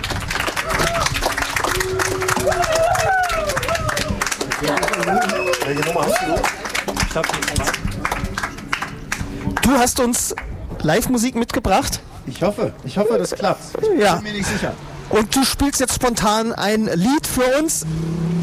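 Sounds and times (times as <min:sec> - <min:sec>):
applause: 0:00.0 - 0:10.5
speech: 0:05.0 - 0:07.9, 0:09.7 - 0:18.3.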